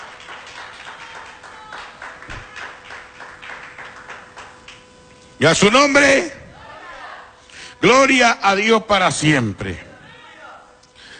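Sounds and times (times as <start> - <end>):
audience clapping hands: 0.0 - 4.9
speech: 5.4 - 6.4, 7.8 - 9.9.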